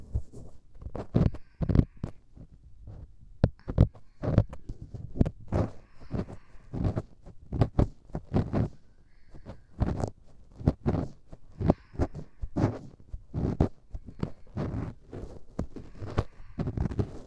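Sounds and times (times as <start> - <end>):
left ear cleaning with long bonten earpick: 3.6 - 17.2.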